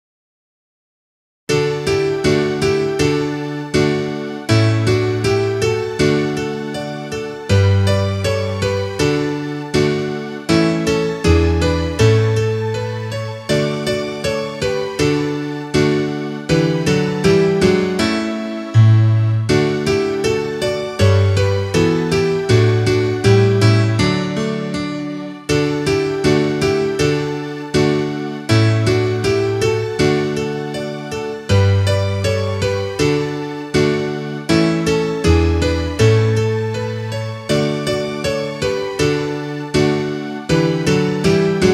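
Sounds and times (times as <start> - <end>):
instrumental music: 1.5 - 41.7.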